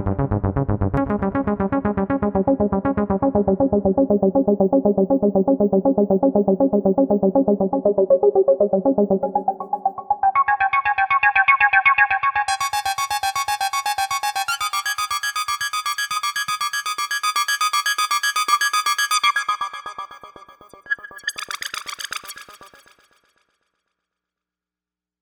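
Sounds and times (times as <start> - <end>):
Novation UltraNova synthesizer arpeggio: 0.9 - 22.4.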